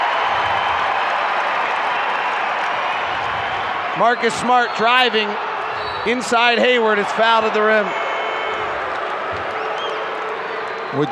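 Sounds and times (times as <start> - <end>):
arena crowd cheering and applauding: 0.0 - 11.1
speech: 4.0 - 8.0, 11.0 - 11.1.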